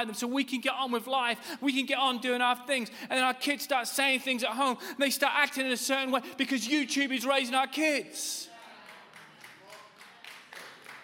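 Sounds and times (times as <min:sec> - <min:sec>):
speech: 0:00.0 - 0:08.5
faint murmur of voices: 0:08.2 - 0:10.6
audience handclaps: 0:08.5 - 0:11.0.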